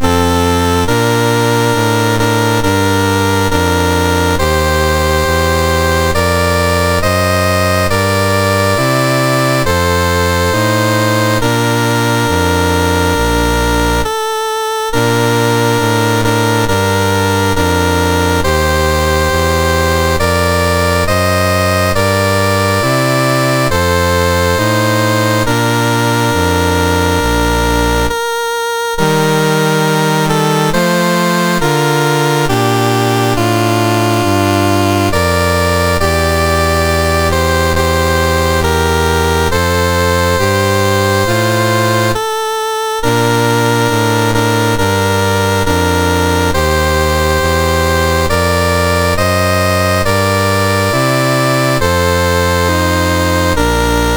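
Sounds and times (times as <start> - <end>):
national anthem on MOS6581R2 chip: 0.0 - 54.1.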